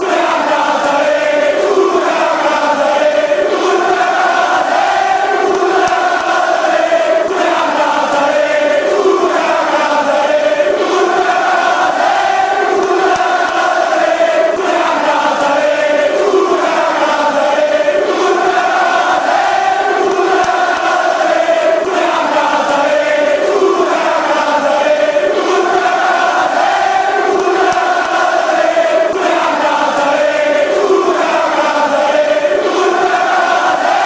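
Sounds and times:
fans chanting: 0.0s - 34.0s.

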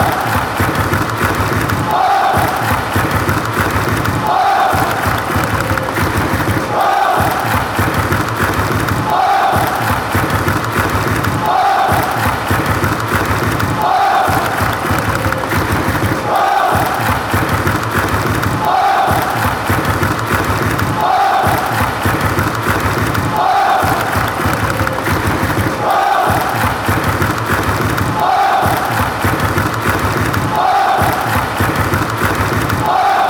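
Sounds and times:
football songs and soccer chants: 0.0s - 33.2s.

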